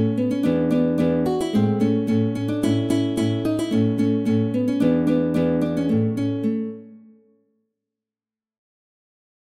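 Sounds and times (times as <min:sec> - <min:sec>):
classical guitar étude: 0:00.0 - 0:07.4.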